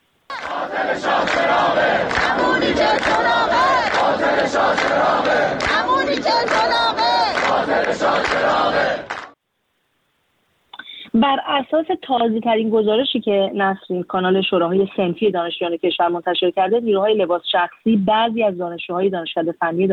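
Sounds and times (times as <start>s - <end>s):
Tehran University engineering students chanting protest slogans: 0.3s - 9.4s
speech: 11.2s - 19.9s.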